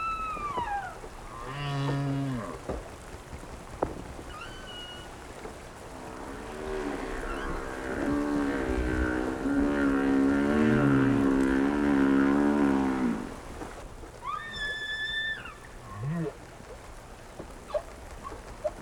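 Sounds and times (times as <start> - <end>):
whale chirps and grunts: 0.0 - 2.8, 4.3 - 13.6, 14.2 - 16.4.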